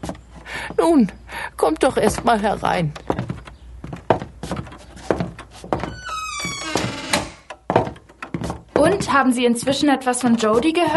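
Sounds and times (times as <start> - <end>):
speech: 0.8 - 3.0, 9.0 - 10.9
house front door thumping and knocking as opened from inside: 2.0 - 9.8
house front door creaking: 2.9 - 9.0.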